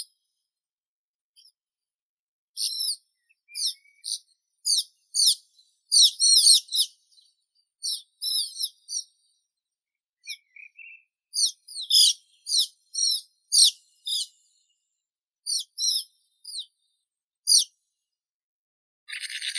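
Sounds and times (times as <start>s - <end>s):
sand martin Riparia riparia calling: 3.5s - 6.9s, 7.8s - 9.0s, 11.3s - 14.3s, 15.5s - 16.7s, 17.5s - 17.7s.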